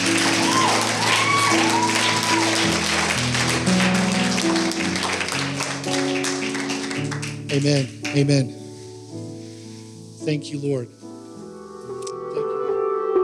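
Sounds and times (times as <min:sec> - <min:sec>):
audience hand clapping: 0:00.0 - 0:08.5
speech: 0:07.6 - 0:08.6, 0:10.3 - 0:11.0.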